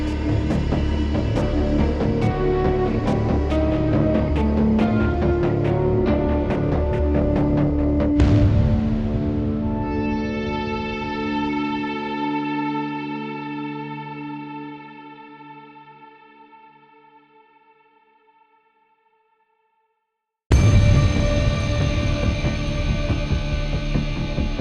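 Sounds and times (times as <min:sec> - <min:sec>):
interrogation music cue: 0:00.0 - 0:13.2, 0:20.5 - 0:24.5.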